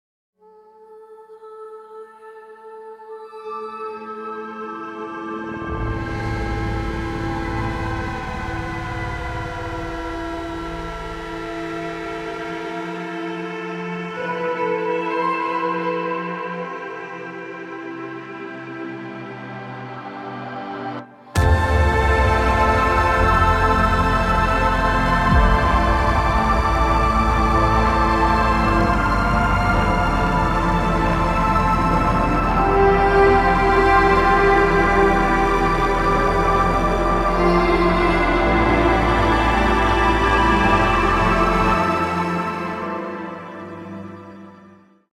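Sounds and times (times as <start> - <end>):
electric cello: 5.4 - 17.3, 21.4 - 44.6.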